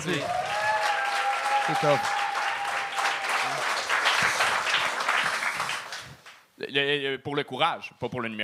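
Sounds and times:
speech: 0.0s - 0.4s, 1.7s - 2.2s, 6.7s - 8.4s
audience applauding: 0.0s - 6.4s.

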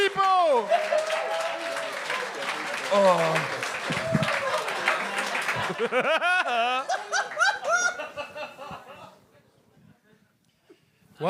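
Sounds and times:
audience applause: 0.0s - 8.1s
laughter: 2.5s - 10.3s
speech: 5.8s - 7.4s.

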